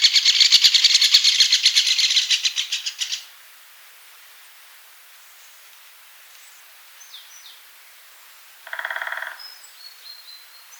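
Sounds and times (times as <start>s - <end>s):
great spotted woodpecker giving sharp kik calls: 0.0s - 3.3s, 8.6s - 9.6s.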